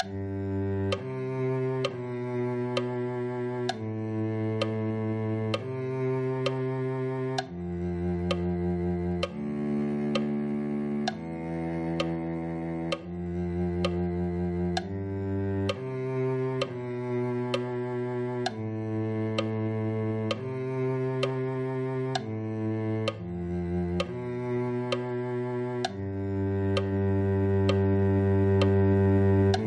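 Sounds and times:
cello: 0.0s - 29.6s.

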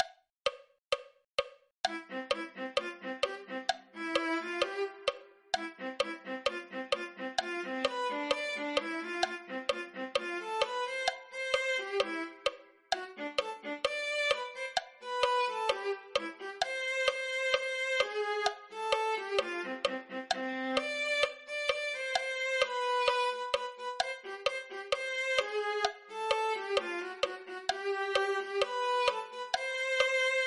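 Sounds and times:
viola: 1.9s - 30.4s.

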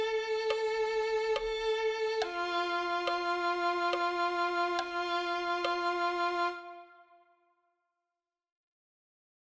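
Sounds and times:
violin melody: 0.0s - 7.4s.

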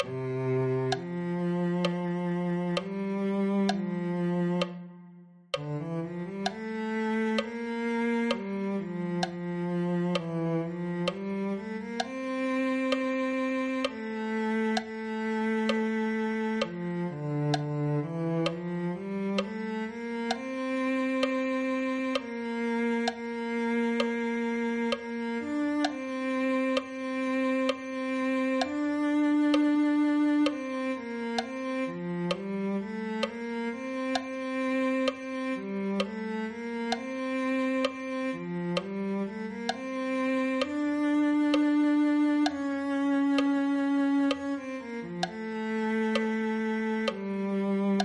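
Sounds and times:
cello: 0.0s - 48.0s.

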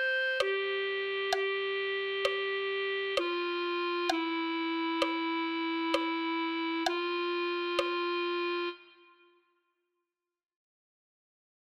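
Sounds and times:
clarinet playing a hymn: 0.0s - 9.3s.

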